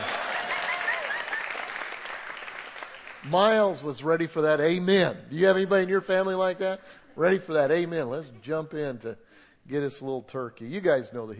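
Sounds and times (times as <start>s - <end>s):
audience applause: 0.0s - 3.6s
speech: 3.2s - 11.3s.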